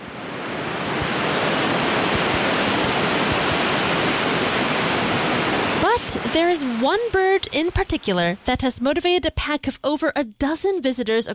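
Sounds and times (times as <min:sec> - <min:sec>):
ocean waves crashing against rocks: 0:00.0 - 0:08.6
speech: 0:06.4 - 0:11.3.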